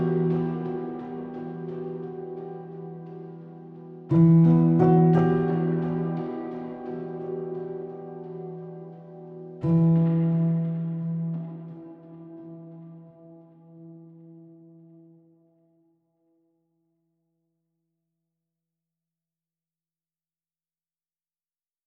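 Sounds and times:
enigmatic mysterious music: 0:00.0 - 0:15.1.

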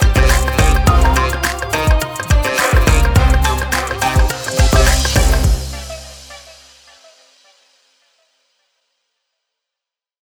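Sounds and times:
Indian music full mix: 0:00.0 - 0:06.7.

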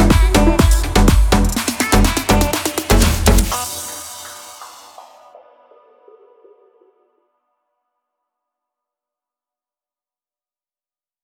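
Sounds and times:
electronic house techno music: 0:00.0 - 0:06.8.

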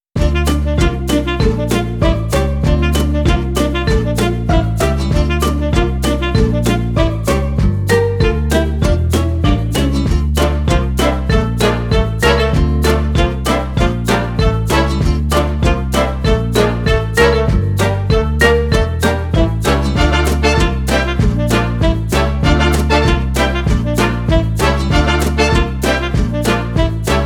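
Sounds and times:
cheerful saxophone: 0:00.2 - 0:27.2.

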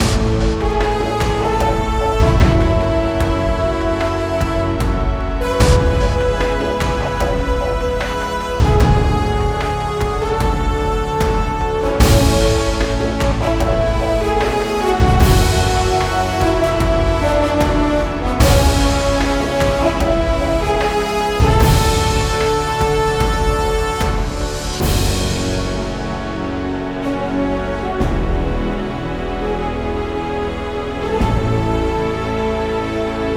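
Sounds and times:
cinematic music: 0:00.0 - 0:33.3.

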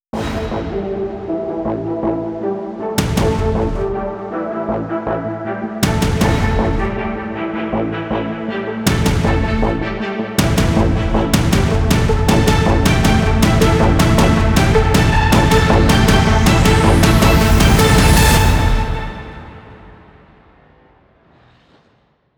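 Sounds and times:
tension music: 0:00.2 - 0:22.0.

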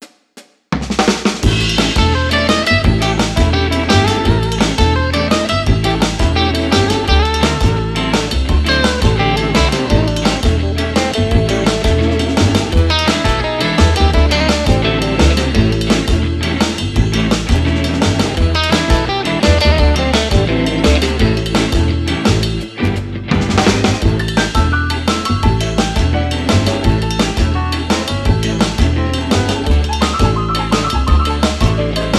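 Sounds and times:
cheerful entertainment music with dual solo: 0:01.6 - 0:32.1.

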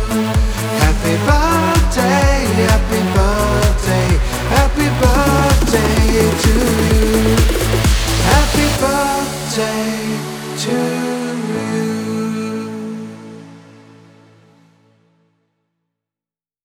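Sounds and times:
birthday song singing: 0:00.0 - 0:12.9.

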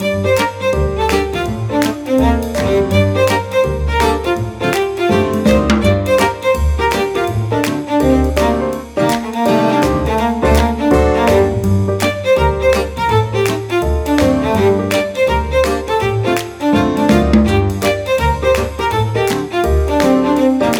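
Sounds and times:
cheerful string music: 0:00.0 - 0:20.7.

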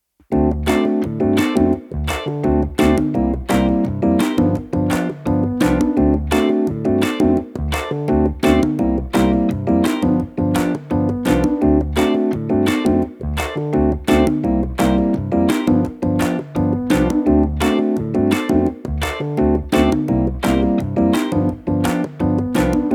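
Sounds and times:
light soft cheerful entertainment music: 0:00.2 - 0:22.9.

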